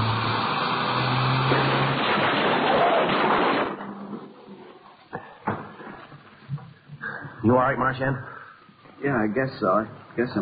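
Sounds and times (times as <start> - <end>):
car engine revving: 0.0 - 3.0
car crash impact grinding roar: 0.0 - 4.6
car crash debris rattling and clunking as it settles: 1.3 - 7.0
speech: 7.5 - 8.3, 9.0 - 10.3.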